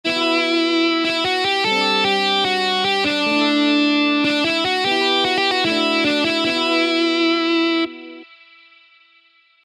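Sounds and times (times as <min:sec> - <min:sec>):
metal riff: 0:00.1 - 0:08.3.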